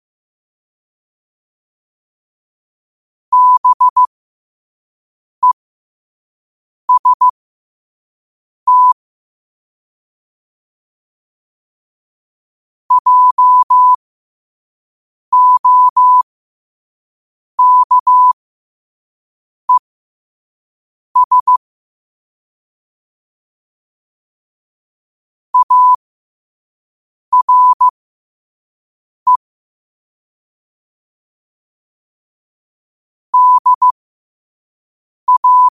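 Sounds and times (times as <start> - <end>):
morse code at 5 wpm: 3.3 - 4.1, 6.9 - 7.3, 8.7 - 9.0, 12.9 - 14.0, 15.3 - 16.2, 17.6 - 18.4, 21.2 - 21.6, 25.6 - 26.0, 27.3 - 27.9, 33.4 - 34.0, 35.3 - 35.7.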